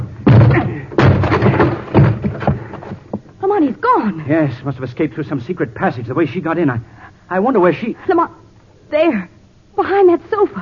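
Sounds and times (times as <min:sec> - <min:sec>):
door being broken down: 0:00.0 - 0:03.2
speech: 0:04.0 - 0:10.6.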